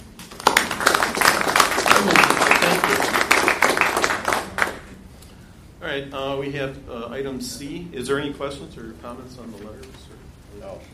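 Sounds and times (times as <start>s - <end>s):
round of applause: 0.2s - 4.9s
speech: 2.0s - 3.2s, 5.9s - 10.9s.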